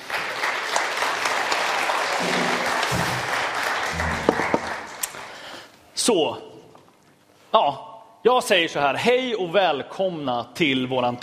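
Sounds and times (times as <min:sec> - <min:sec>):
audience applause: 0:00.0 - 0:05.4
speech: 0:06.1 - 0:06.5, 0:07.6 - 0:11.2.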